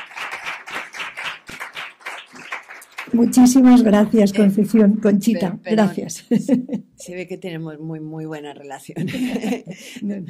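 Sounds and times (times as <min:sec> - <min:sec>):
audience applause: 0:00.0 - 0:04.9
speech: 0:03.1 - 0:10.2
laughter: 0:06.2 - 0:06.8, 0:09.0 - 0:10.2.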